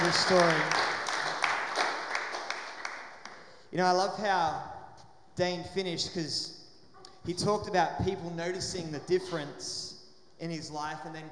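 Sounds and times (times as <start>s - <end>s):
faint scattered audience clapping: 0.0s - 3.6s
speech: 0.1s - 0.8s, 3.7s - 4.8s, 5.4s - 6.6s, 7.2s - 11.2s.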